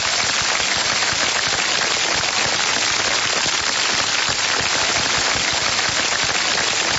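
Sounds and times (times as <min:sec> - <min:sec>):
audience applause: 0:00.0 - 0:06.9.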